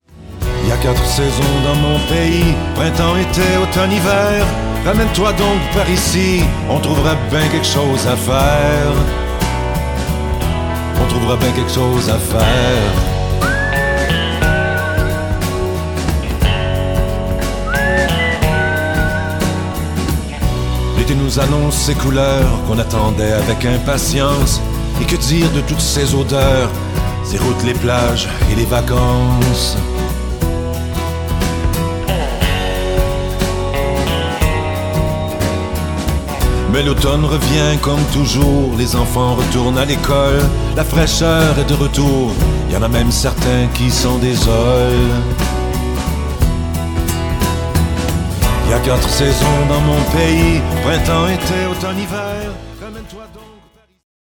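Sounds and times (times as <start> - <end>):
guitar: 0.0 - 54.0
voice: 0.6 - 9.3, 11.0 - 15.3, 21.0 - 30.0, 36.7 - 45.4, 48.6 - 54.0.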